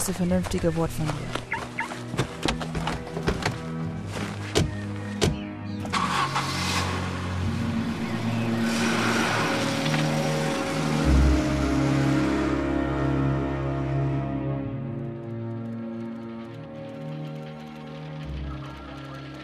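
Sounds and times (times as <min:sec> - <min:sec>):
speech: 0:00.0 - 0:01.5
car engine starting and running as the car drives off: 0:02.0 - 0:19.4
sharp knocks and clicks: 0:02.1 - 0:03.7, 0:04.5 - 0:05.5.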